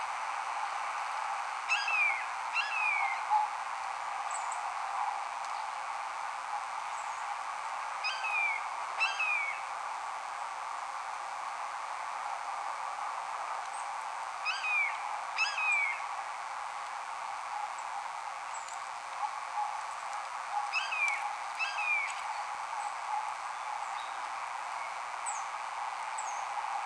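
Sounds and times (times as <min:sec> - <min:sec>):
background hiss: 0:00.0 - 0:26.8
blue jay imitating a hawk: 0:01.7 - 0:03.2, 0:08.0 - 0:09.7, 0:14.4 - 0:16.0, 0:20.6 - 0:22.2.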